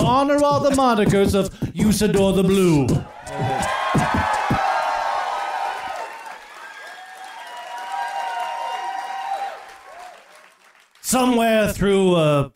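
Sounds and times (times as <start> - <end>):
speech: 0.1 - 4.3, 11.1 - 12.5
audience applause and cheering: 3.0 - 11.2.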